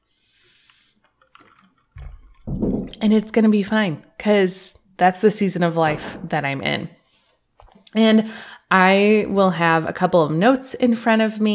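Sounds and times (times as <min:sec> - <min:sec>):
drinking from a water bottle: 0:00.1 - 0:02.5
speech: 0:03.0 - 0:07.0, 0:07.9 - 0:11.5.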